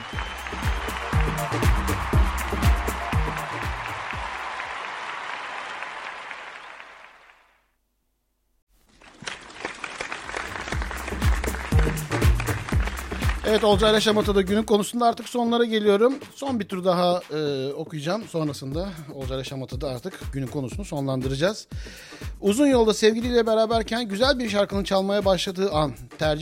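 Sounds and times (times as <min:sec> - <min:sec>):
musical beat: 0:00.0 - 0:04.6, 0:10.4 - 0:14.7, 0:18.7 - 0:26.4
big crowd applauding: 0:00.0 - 0:07.6, 0:08.9 - 0:14.6
speech: 0:13.6 - 0:26.4.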